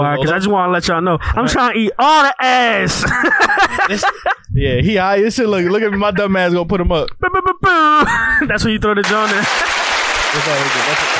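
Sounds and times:
speech: 0:00.0 - 0:11.1
laughter: 0:02.8 - 0:04.5, 0:05.3 - 0:06.6, 0:07.2 - 0:11.1
applause: 0:09.0 - 0:11.1.

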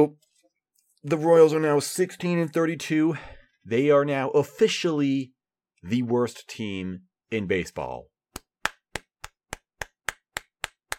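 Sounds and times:
speech: 0:00.0 - 0:00.2, 0:01.0 - 0:08.1
golf claps, soft polite clapping: 0:08.4 - 0:10.9.

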